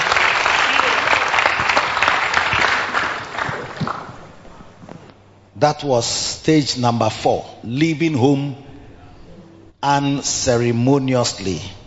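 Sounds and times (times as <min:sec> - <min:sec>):
audience clapping: 0:00.0 - 0:04.4
speech: 0:05.6 - 0:08.7, 0:09.8 - 0:11.8.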